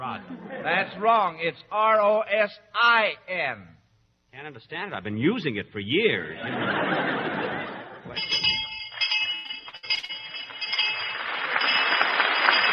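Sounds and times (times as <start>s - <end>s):
speech: 0.0s - 3.8s, 4.4s - 8.4s
audience laughter: 6.3s - 8.2s
quiz show bell: 8.2s - 12.7s.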